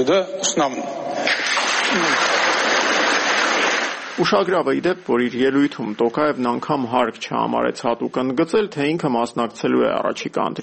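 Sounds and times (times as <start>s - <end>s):
speech: 0.0s - 1.3s, 1.9s - 2.3s, 4.2s - 10.6s
deputies applauding Kazakhstan president's announcement: 1.3s - 4.3s.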